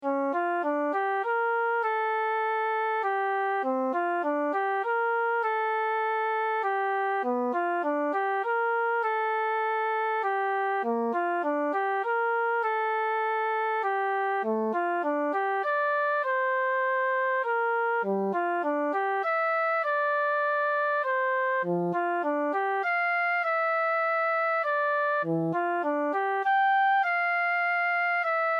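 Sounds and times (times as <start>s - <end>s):
flute improvisation: 0.0s - 28.5s.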